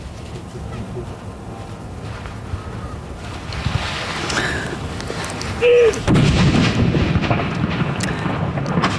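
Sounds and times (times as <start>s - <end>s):
deep rolling rumble: 0.0s - 8.9s
steady wind: 0.0s - 8.9s
cannon salute bang at fortress: 6.0s - 8.9s.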